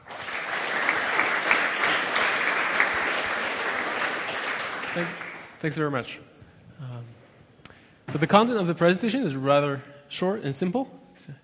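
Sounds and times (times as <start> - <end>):
audience applause: 0.0 - 5.9
speech: 5.0 - 7.2, 8.1 - 11.4.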